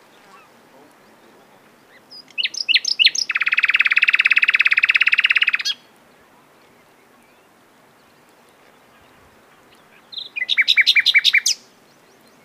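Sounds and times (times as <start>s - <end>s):
common nightingale singing: 0.0s - 5.9s, 8.9s - 12.4s.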